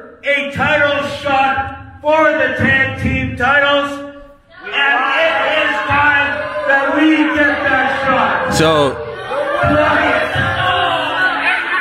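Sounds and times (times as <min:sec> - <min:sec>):
speech: 0:00.0 - 0:04.0, 0:07.2 - 0:09.0
people yelling at a wrestling event: 0:04.5 - 0:11.7.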